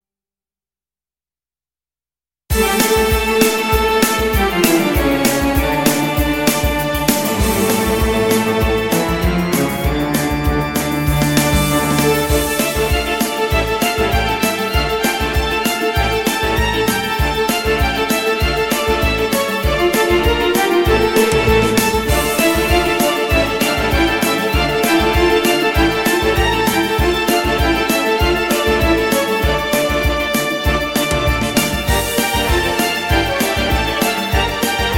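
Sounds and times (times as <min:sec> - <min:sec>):
toccata quickstep: 0:02.5 - 0:34.9.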